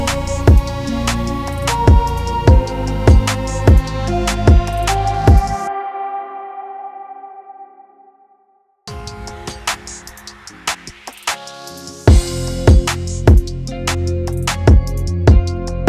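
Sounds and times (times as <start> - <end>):
urban beat bed in F major at 150 BPM: 0.0 - 5.6, 8.9 - 15.8.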